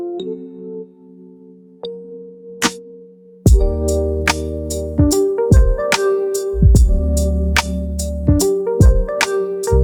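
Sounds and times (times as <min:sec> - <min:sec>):
rainy lofi music: 0:02.6 - 0:09.8.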